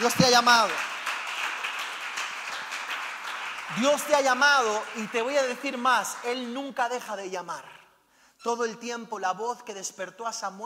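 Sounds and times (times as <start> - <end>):
speech: 0.0 - 0.9, 3.7 - 7.8, 8.4 - 10.6
audience applause: 0.0 - 6.9.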